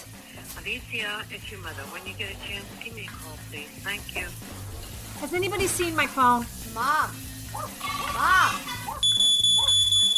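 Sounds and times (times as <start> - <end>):
speech: 0.6 - 8.7
smoke alarm beeping: 9.0 - 10.1.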